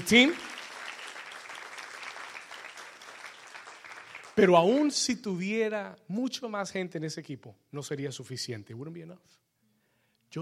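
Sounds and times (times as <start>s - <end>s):
audience applause: 0.0s - 4.6s
speech: 0.1s - 0.5s, 4.4s - 9.4s.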